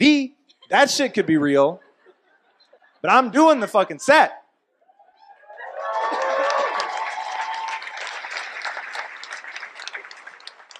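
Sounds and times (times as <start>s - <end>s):
speech: 0.7s - 1.8s, 3.0s - 4.4s
whoops and cheers: 4.9s - 8.2s
audience applause: 5.5s - 10.7s.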